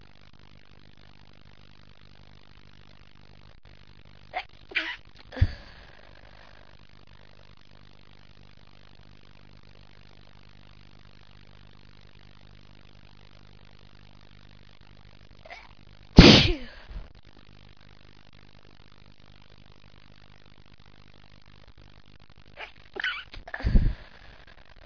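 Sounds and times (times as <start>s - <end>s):
woman stifling: 4.4s - 6.6s, 15.5s - 17.1s, 22.6s - 24.8s.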